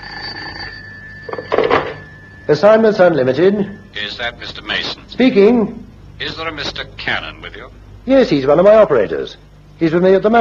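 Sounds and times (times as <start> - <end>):
telephone bell ringing: 0.0 - 4.4
speech: 2.5 - 10.3.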